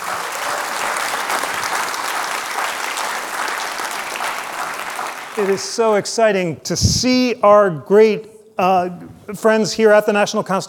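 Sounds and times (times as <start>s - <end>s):
crowd clapping: 0.0s - 6.0s
speech: 5.4s - 10.6s.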